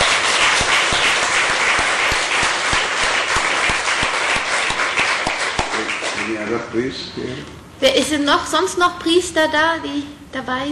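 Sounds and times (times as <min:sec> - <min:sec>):
audience applause: 0:00.0 - 0:06.4
speech: 0:06.5 - 0:10.6.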